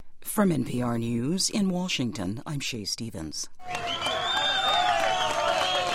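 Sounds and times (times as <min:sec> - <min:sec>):
speech: 0:00.4 - 0:04.0
crowd cheering outside the San Jose mine in Chile at a miner rescue: 0:03.6 - 0:05.9.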